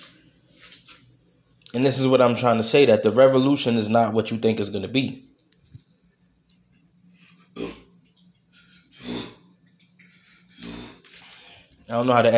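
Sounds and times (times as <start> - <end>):
speech: 1.7 - 5.3, 11.9 - 12.3
person burping: 7.5 - 7.9, 9.0 - 9.5, 10.6 - 11.1.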